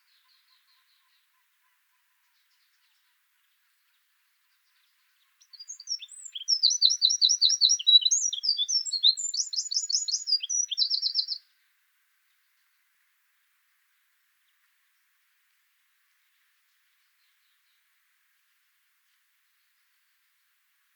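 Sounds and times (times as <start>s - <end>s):
Eurasian wren Troglodytes troglodytes singing shrill rapid trills: 5.4s - 11.4s.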